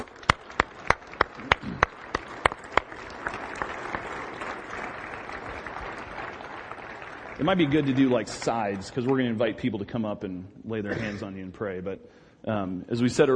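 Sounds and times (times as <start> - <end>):
crowd clapping in a round of applause: 0.0 - 9.7
speech: 7.4 - 13.3.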